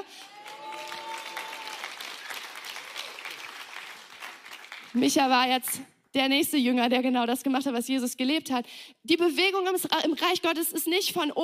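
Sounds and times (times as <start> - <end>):
audience applause: 0.0 - 5.0
speech: 4.9 - 11.4.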